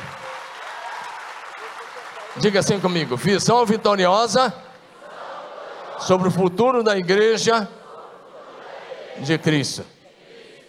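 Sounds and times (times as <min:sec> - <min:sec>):
applause: 0:00.0 - 0:04.0
speech: 0:02.4 - 0:04.7, 0:06.0 - 0:07.8, 0:09.2 - 0:10.0.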